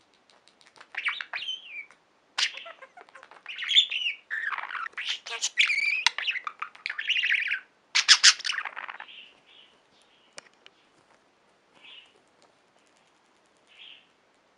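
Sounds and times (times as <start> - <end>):
budgerigar chatter: 2.4 - 9.1.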